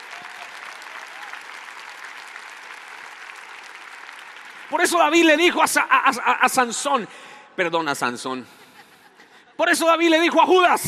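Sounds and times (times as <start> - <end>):
audience applause: 0.0 - 5.4
speech: 4.7 - 8.6, 9.6 - 10.8.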